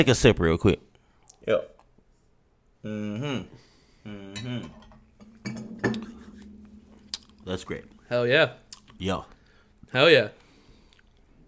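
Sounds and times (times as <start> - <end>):
speech: 0.0 - 0.9, 1.5 - 1.7, 2.8 - 4.8, 7.4 - 10.4
glasses clinking in a toast: 4.4 - 8.0.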